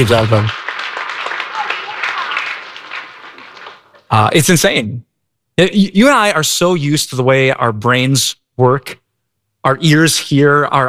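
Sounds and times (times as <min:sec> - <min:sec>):
speech: 0:00.0 - 0:00.6, 0:04.1 - 0:09.0, 0:09.6 - 0:10.8
audience applause: 0:00.0 - 0:04.0.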